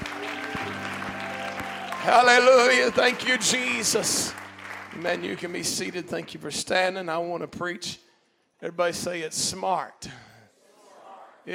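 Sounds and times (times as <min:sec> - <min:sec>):
audience clapping: 0:00.0 - 0:07.0
speech: 0:02.0 - 0:04.4, 0:05.0 - 0:10.3.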